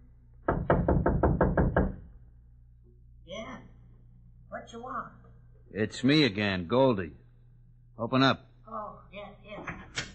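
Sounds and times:
loud knocking on a wooden shack door: 0.4 - 2.1
speech: 4.7 - 7.2, 8.0 - 9.3.

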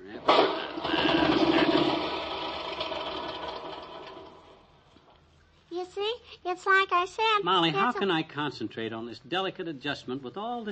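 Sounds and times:
lawnmower engine starting: 0.2 - 4.7
speech: 6.6 - 10.6.

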